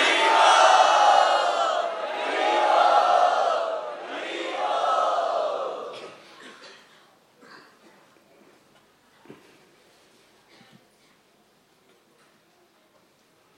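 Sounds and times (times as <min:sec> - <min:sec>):
crowd loudly chanting in welcome at a Sunday festival: 0:00.0 - 0:06.2.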